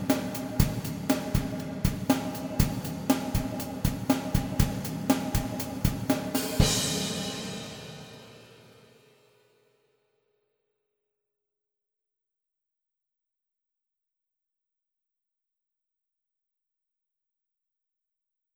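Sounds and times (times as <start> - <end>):
session drummer playing drums: 0.0 - 8.8.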